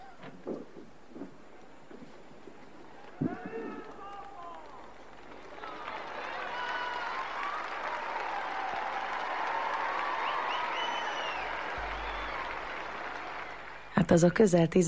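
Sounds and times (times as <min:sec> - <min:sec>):
large crowd applauding: 0:02.5 - 0:14.2
speech: 0:14.1 - 0:14.8.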